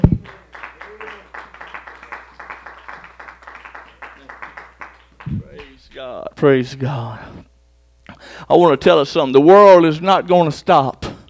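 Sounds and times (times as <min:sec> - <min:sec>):
audience clapping hands: 0:00.0 - 0:06.0
speech: 0:06.0 - 0:07.4, 0:08.4 - 0:11.0.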